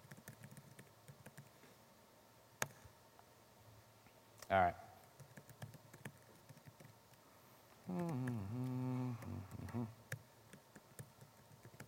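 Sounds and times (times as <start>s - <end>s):
typing on a computer keyboard: 0.0s - 1.5s, 5.1s - 7.0s, 7.9s - 11.8s
speech: 4.5s - 4.8s.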